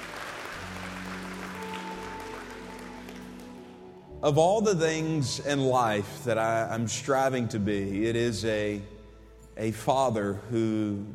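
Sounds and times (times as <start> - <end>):
audience applause: 0.0 - 3.8
speech: 4.2 - 8.9, 9.6 - 11.1.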